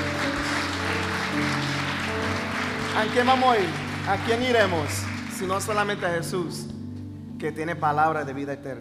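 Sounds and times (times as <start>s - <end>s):
church congregation applause during a Sunday morning service: 0.0s - 6.6s
speech: 3.0s - 6.7s, 7.4s - 8.7s.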